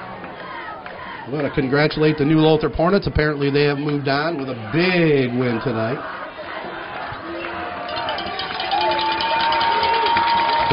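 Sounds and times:
stadium crowd cheering: 0:00.0 - 0:10.7
speech: 0:01.3 - 0:06.2
cowbells ringing: 0:07.3 - 0:10.7.

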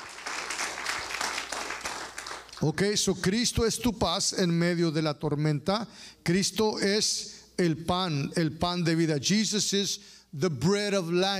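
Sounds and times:
congregation applauding during a church service: 0:00.0 - 0:02.8
speech: 0:02.6 - 0:11.3.

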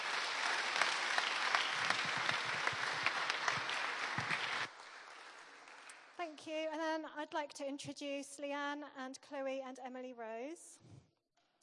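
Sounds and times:
audience applause: 0:00.0 - 0:06.2
speech: 0:07.2 - 0:11.0.

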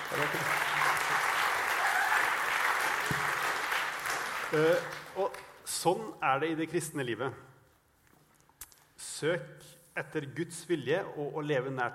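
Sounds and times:
audience applause: 0:00.0 - 0:05.3
speech: 0:00.1 - 0:00.7, 0:04.5 - 0:07.5, 0:09.2 - 0:11.9.

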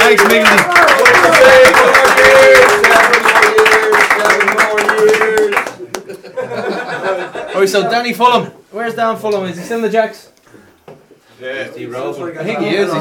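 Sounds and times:
audience applause: 0:00.0 - 0:06.0
laughter: 0:05.6 - 0:08.2
speech: 0:07.7 - 0:10.6, 0:11.4 - 0:12.9.

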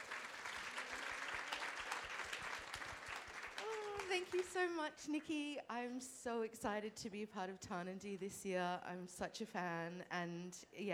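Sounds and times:
audience applause: 0:00.0 - 0:04.4
speech: 0:04.2 - 0:10.9.

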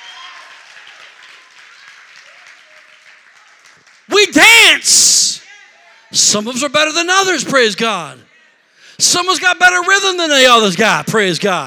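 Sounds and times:
audience clapping hands: 0:00.0 - 0:04.6
speech: 0:04.2 - 0:05.2, 0:06.1 - 0:08.3, 0:09.0 - 0:11.6.

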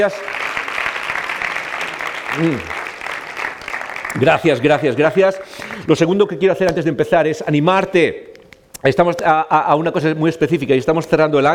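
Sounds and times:
speech: 0:00.0 - 0:00.4, 0:02.3 - 0:02.8, 0:04.1 - 0:11.5
crowd clapping: 0:00.0 - 0:05.9.

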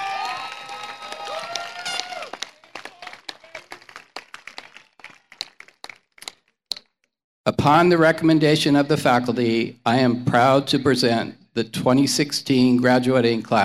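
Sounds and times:
crowd cheering: 0:00.0 - 0:06.3
graduation audience applause: 0:00.0 - 0:06.4
speech: 0:07.5 - 0:13.6.

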